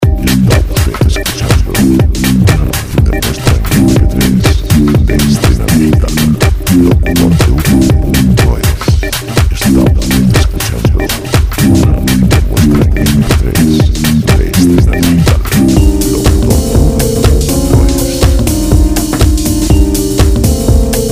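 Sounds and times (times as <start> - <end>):
dance music at 122 BPM: 0.0 - 21.1.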